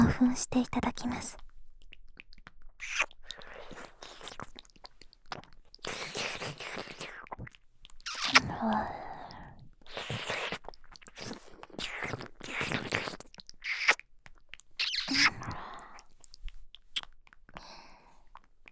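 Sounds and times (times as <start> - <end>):
speech: 0.2 - 1.4, 8.6 - 9.0
close-up ear licking with wet smacks and slurps: 1.4 - 17.6.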